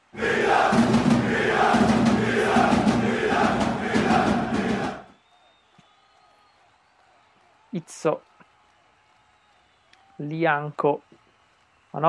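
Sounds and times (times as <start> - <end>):
football supporters chanting: 0.0 - 5.1
speech: 7.9 - 8.3, 10.2 - 11.1.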